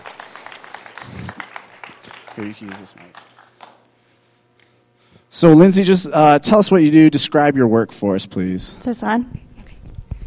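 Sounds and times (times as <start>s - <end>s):
audience applause: 0.0s - 3.8s
speech: 2.4s - 3.3s, 5.3s - 9.4s.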